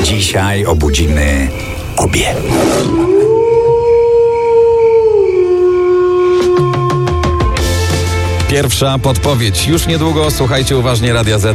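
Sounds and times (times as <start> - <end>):
wolf howling: 0.0 - 8.1
speech: 0.1 - 3.5, 8.5 - 11.5.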